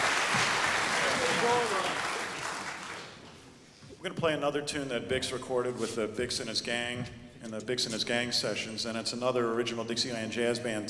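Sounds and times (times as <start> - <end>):
crowd applauding: 0.0 - 3.3
speech: 4.0 - 10.8.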